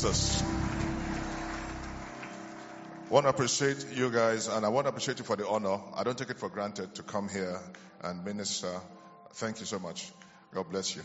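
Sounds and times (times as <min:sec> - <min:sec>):
speech: 0:00.0 - 0:00.8, 0:03.1 - 0:11.0
low hum: 0:00.0 - 0:03.0
crowd applause: 0:00.0 - 0:03.6.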